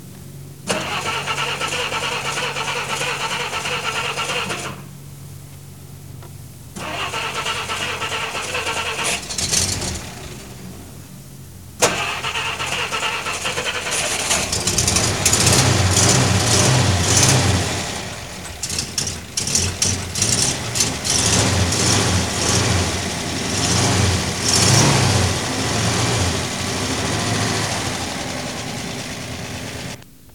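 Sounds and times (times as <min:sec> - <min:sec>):
1961 Plymouth Valiant engine trying to start: 0:00.6 - 0:05.0, 0:06.7 - 0:11.2, 0:11.8 - 0:30.2.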